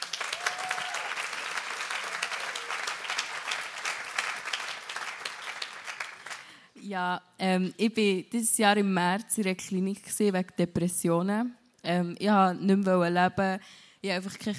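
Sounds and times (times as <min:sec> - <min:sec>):
audience applause: 0:00.0 - 0:06.6
speech: 0:06.9 - 0:14.5.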